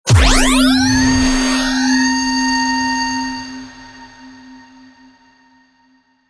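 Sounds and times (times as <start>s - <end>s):
low cinematic impact: 0.1s - 4.4s.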